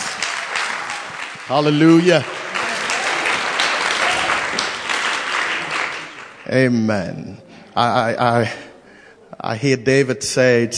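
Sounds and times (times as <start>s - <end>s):
crowd applause welcoming a speaker: 0.0s - 6.8s
speech: 1.5s - 2.3s, 6.5s - 8.7s, 9.4s - 10.7s.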